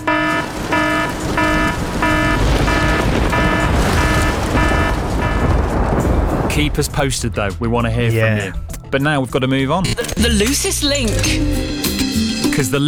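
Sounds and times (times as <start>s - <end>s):
rain alarm: 0.0s - 6.4s
speech: 6.6s - 11.7s, 12.6s - 12.8s.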